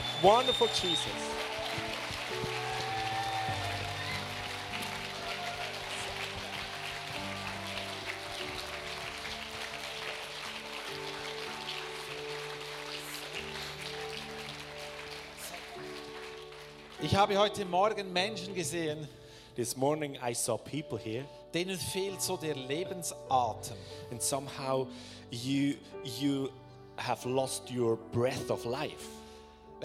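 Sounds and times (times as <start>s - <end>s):
audience applause: 0.0s - 17.4s
sustained keyboard chords: 0.0s - 19.2s
speech: 0.2s - 1.9s, 17.0s - 29.2s.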